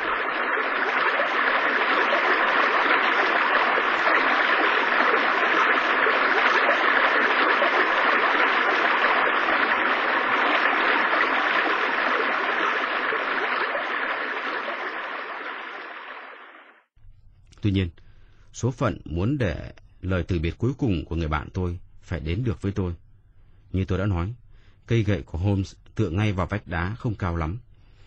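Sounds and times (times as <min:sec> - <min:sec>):
roaring waterfall: 0:00.0 - 0:16.5
speech: 0:17.6 - 0:18.0, 0:18.6 - 0:23.0, 0:23.7 - 0:27.7.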